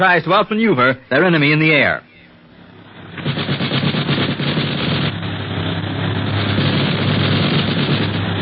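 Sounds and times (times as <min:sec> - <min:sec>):
speech: 0:00.0 - 0:02.1
machine gun fire from a plane: 0:03.0 - 0:05.3, 0:06.1 - 0:08.3.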